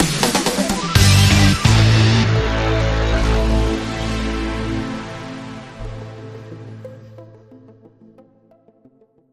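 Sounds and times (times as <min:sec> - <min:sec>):
news sting with synth pad: 0:00.8 - 0:07.4.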